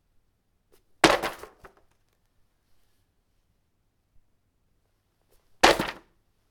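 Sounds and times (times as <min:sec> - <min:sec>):
book falling: 0:01.0 - 0:01.8, 0:05.6 - 0:06.0.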